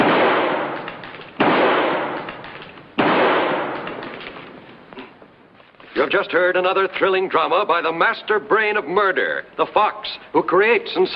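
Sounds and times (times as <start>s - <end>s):
gunshots shooting a door lock: 0.0s - 4.5s
speech: 6.0s - 11.1s.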